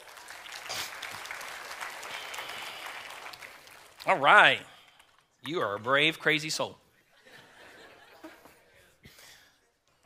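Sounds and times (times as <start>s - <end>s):
crowd applause: 0.0s - 5.0s
speech: 4.0s - 4.7s, 5.4s - 6.8s
laughter: 7.1s - 9.0s.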